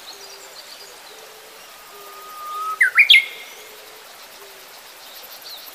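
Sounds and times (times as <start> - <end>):
Japanese bush warbler singing: 1.6 - 3.5.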